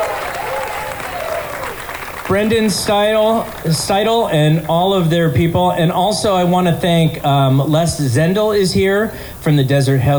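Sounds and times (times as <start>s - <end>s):
audience applause: 0.0s - 4.3s
speech: 2.3s - 10.1s.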